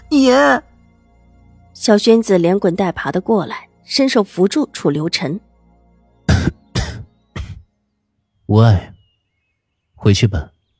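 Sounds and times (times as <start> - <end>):
speech: 0.2 - 0.7, 1.8 - 5.5, 8.5 - 8.9, 10.0 - 10.5
man coughing violently: 6.3 - 7.6.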